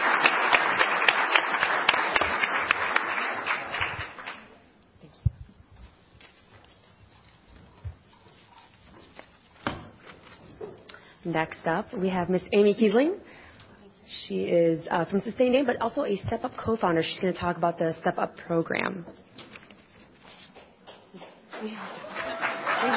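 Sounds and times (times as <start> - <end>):
scattered claps: 0.0 - 4.5
audience applause: 0.0 - 4.6, 21.5 - 22.9
thumps and shuffling: 5.1 - 10.9
speech: 11.3 - 13.3, 14.2 - 19.3, 21.6 - 22.0.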